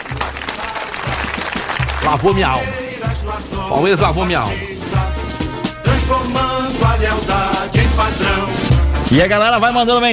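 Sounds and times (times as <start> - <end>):
applause: 0.0 - 2.7
speech: 2.1 - 5.0, 6.2 - 10.1.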